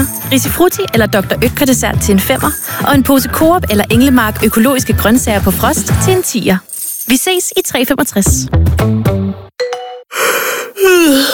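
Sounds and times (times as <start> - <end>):
speech: 0.3 - 9.4, 11.0 - 11.3
person yawning: 10.2 - 11.3.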